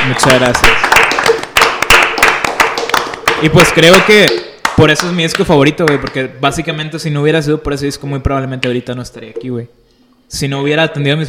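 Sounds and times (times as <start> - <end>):
people clapping: 0.0 - 6.2
speech: 0.1 - 1.0, 3.4 - 11.2.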